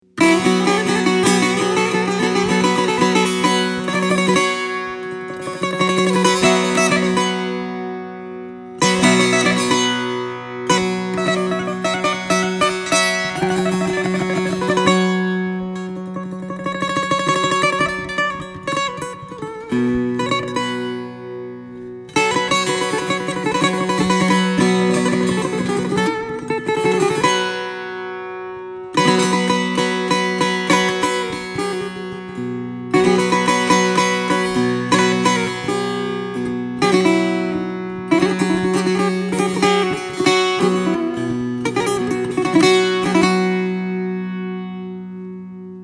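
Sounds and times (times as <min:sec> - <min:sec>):
solo setar playing: 0:00.0 - 0:45.8.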